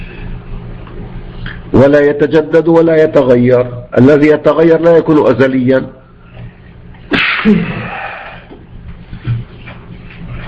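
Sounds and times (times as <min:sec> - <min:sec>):
speech: 0:01.7 - 0:06.0, 0:07.4 - 0:07.8
person sneezing during a religious lesson: 0:07.1 - 0:08.5.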